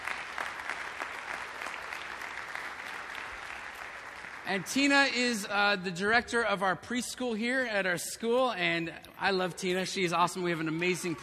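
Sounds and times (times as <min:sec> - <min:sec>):
crowd clapping: 0:00.0 - 0:05.2
speech: 0:04.5 - 0:11.2.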